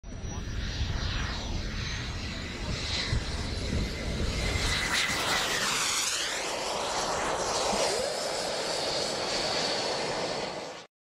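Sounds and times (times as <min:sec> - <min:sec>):
SR-71 Blackbird jet aircraft: 0:00.0 - 0:11.0.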